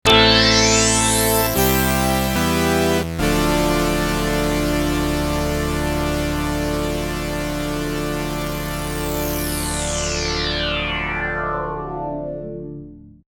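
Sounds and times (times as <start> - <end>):
P600 synthesizer sequence: 0.0 - 13.2.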